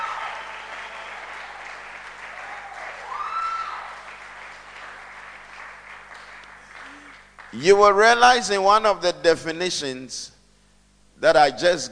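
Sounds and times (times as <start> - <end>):
crowd clapping: 0.0 - 7.6
speech: 7.6 - 10.4, 11.2 - 11.9.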